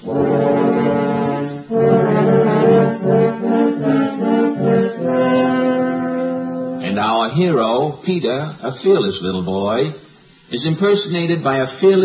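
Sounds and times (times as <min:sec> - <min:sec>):
three horns playing a theme: 0:00.0 - 0:07.2
speech: 0:07.4 - 0:12.0.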